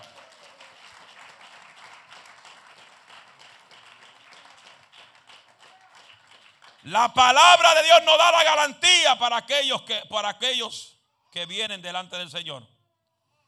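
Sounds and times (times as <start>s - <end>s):
audience applause: 0.0s - 8.7s
speech: 6.8s - 12.7s.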